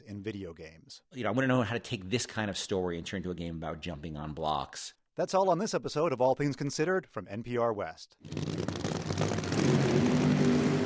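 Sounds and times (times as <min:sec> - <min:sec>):
speech: 0:00.1 - 0:10.3
nitromethane supercharged dragster engine: 0:08.2 - 0:10.8.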